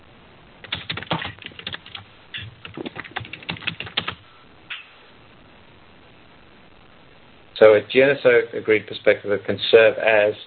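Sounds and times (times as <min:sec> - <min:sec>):
computer keyboard typing into a chat: 0:00.6 - 0:04.2
speech: 0:07.6 - 0:10.4.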